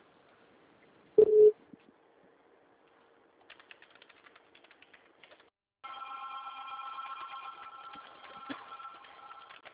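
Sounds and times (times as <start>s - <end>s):
short beep: 1.2s - 1.6s
telephone ringing with an incoming call: 5.9s - 9.6s.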